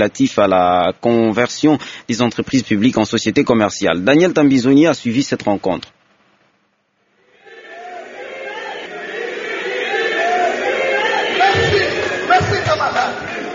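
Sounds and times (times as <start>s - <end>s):
speech: 0.0s - 5.9s
large crowd shouting for an encore: 7.1s - 13.5s.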